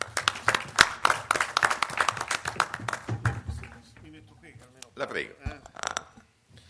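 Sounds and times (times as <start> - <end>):
audience applause: 0.0 - 4.2
speech: 5.0 - 5.6.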